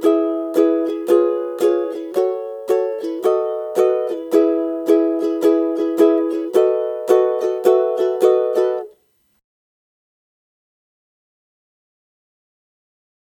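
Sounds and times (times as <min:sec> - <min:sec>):
ukulele strumming: 0:00.0 - 0:09.0.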